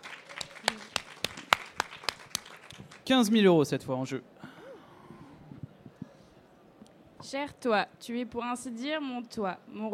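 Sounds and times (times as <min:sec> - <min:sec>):
audience applause: 0:00.0 - 0:03.2
speech: 0:03.1 - 0:04.4, 0:07.3 - 0:09.9.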